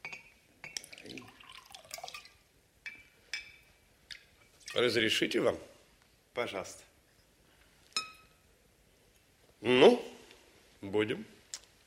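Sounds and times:
glasses clinking: 0:00.0 - 0:03.7, 0:08.0 - 0:08.4
wine and vodka pouring into glasses at a dinner table: 0:00.6 - 0:03.6
speech: 0:04.8 - 0:05.7, 0:06.4 - 0:06.9, 0:11.0 - 0:11.3.

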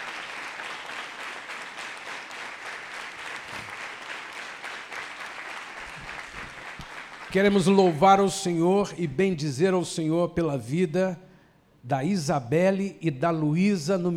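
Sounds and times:
audience applauding: 0:00.0 - 0:08.3
speech: 0:07.3 - 0:14.1.

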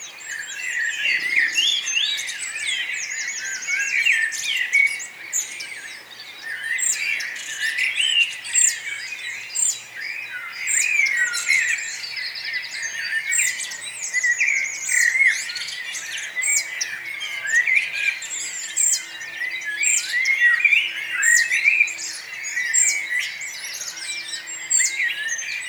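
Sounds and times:
many birds singing: 0:00.0 - 0:25.6.

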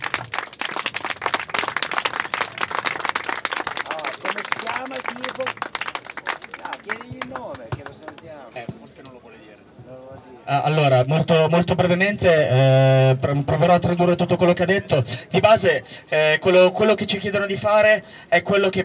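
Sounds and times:
audience applauding a speaker: 0:00.0 - 0:08.4
voices calling out and talking over the clapping: 0:00.0 - 0:18.8
speech: 0:04.8 - 0:05.7, 0:10.5 - 0:18.8.

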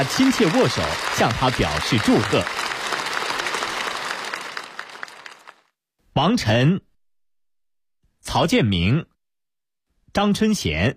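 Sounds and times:
speech: 0:00.0 - 0:02.6, 0:06.2 - 0:06.9, 0:08.2 - 0:09.1, 0:10.1 - 0:10.9
applause for newly elected Vice President Wang Qishan at the national congress: 0:00.0 - 0:05.8.

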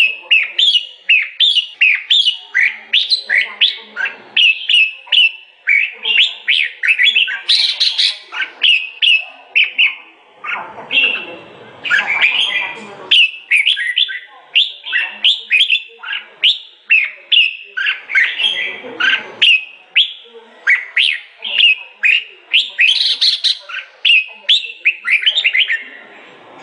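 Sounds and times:
sooty-headed bulbul song of sharp chirps and bubbling phrases: 0:00.0 - 0:25.9.

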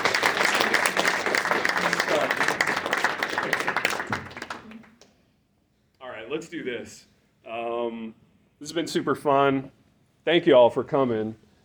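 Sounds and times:
crowd clapping: 0:00.0 - 0:05.2
speech: 0:06.4 - 0:11.4.

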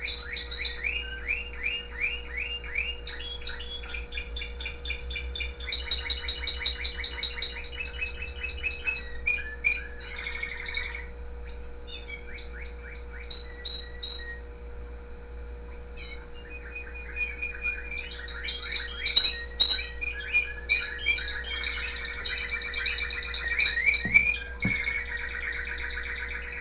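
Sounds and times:
canary singing: 0:00.0 - 0:14.4, 0:16.0 - 0:26.5
steady low hum: 0:00.0 - 0:26.5.

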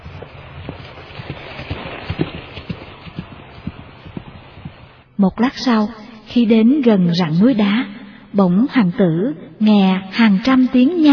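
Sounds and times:
horse hooves galloping across a field: 0:00.0 - 0:05.2
speech: 0:05.2 - 0:11.1.

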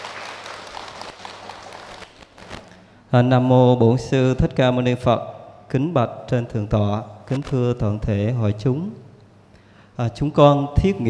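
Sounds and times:
audience applause: 0:00.0 - 0:02.4
speech: 0:03.1 - 0:09.0, 0:10.0 - 0:11.0.

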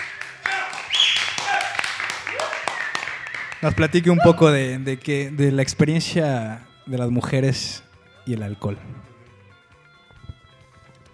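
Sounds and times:
audience at a talk on alcohol clapping: 0:00.0 - 0:04.4
speech: 0:03.6 - 0:09.1.

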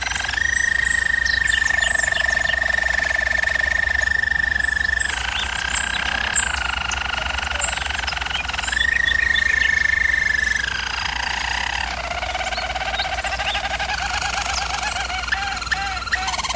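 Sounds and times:
German Roller canary rolling song: 0:00.0 - 0:16.5
low background hum: 0:00.0 - 0:16.5.

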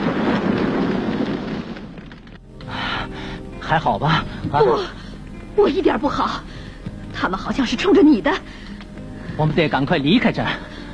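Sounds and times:
car exploding in midair: 0:00.0 - 0:02.4
speech: 0:03.7 - 0:05.0, 0:05.6 - 0:06.6, 0:07.2 - 0:08.6, 0:09.4 - 0:10.7.

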